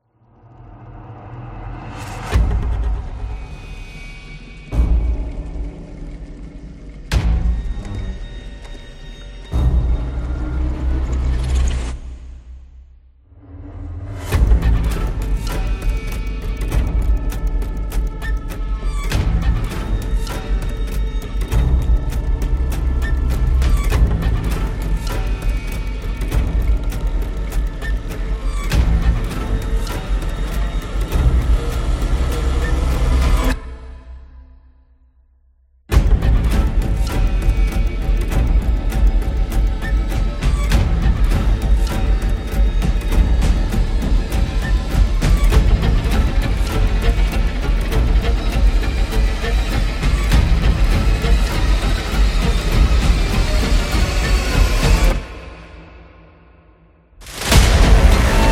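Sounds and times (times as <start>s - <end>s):
suspense trailer music: 0.0s - 58.5s.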